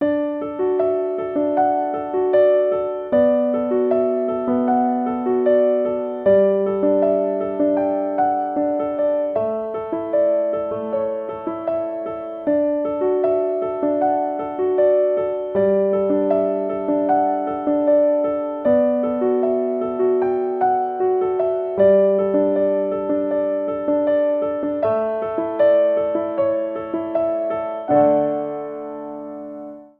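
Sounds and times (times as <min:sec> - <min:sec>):
solo piano: 0:00.0 - 0:29.9.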